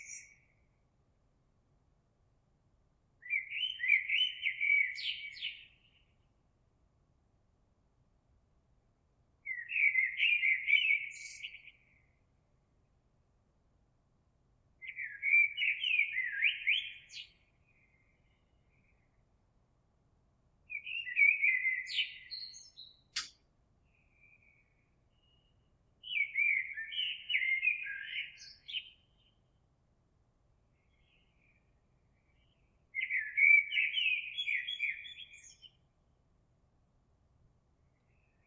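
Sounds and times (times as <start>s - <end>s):
blackbird: 0.0s - 0.6s, 3.2s - 6.1s, 9.4s - 12.2s, 14.8s - 19.1s, 20.7s - 29.4s, 30.8s - 35.8s.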